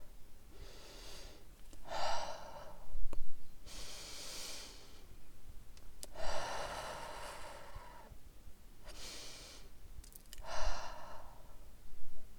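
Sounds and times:
breathing: 0:00.5 - 0:02.9, 0:03.6 - 0:05.1, 0:06.1 - 0:08.2, 0:08.8 - 0:09.7, 0:10.4 - 0:11.7.

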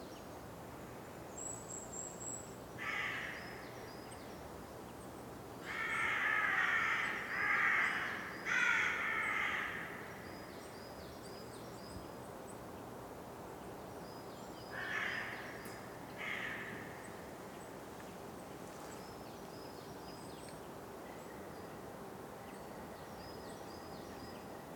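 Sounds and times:
crow cawing: 0:02.8 - 0:03.6, 0:05.6 - 0:10.2, 0:14.7 - 0:17.0.

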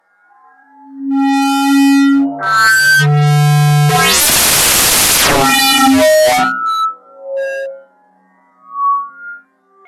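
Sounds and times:
audio feedback: 0:01.0 - 0:09.6.

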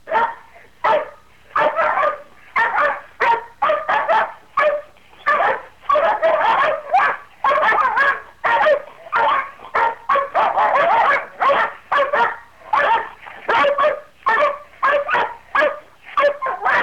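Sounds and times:
hounds barking and baying: 0:00.0 - 0:16.8.

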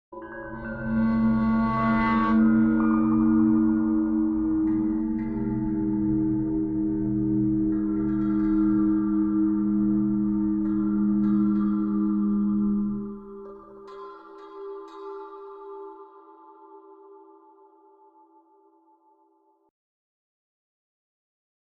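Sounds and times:
metal ring aura drone magic ambient: 0:00.2 - 0:15.9.

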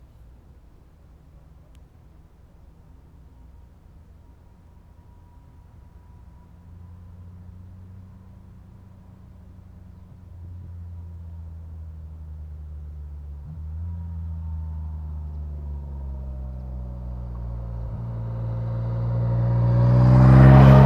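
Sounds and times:
motorcycle passing at 40 km per hour: 0:13.4 - 0:20.8.

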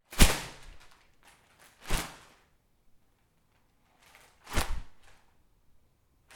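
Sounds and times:
whip slam: 0:00.1 - 0:00.8, 0:04.5 - 0:04.9.

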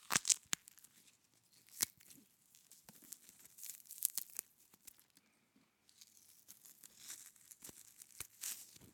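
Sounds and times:
frozen celery breaking and cracking: 0:00.0 - 0:00.9, 0:01.7 - 0:02.1, 0:02.9 - 0:05.1, 0:06.0 - 0:08.8.

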